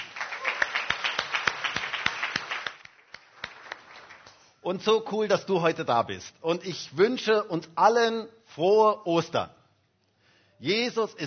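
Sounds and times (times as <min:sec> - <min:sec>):
audience applauding: 0:00.0 - 0:04.5
speech: 0:04.6 - 0:09.6, 0:10.6 - 0:11.2.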